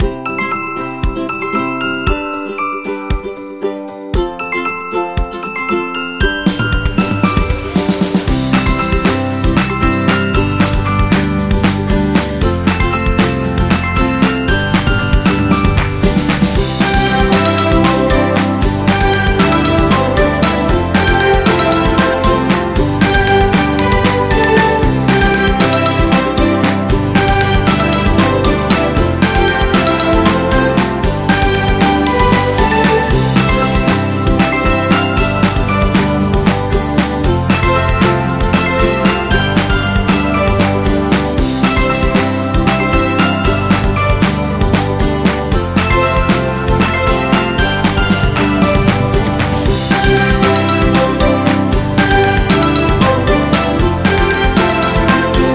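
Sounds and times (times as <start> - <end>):
folk music: 0.0 - 55.5.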